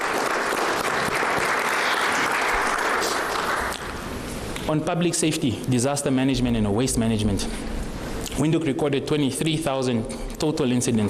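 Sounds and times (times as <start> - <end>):
audience applause: 0.0 - 3.9
speech: 4.7 - 7.8, 8.4 - 11.0.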